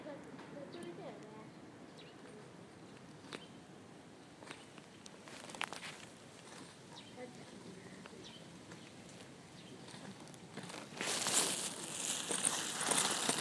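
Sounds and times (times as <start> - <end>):
uguisu bush warbler: 0.6 - 13.3.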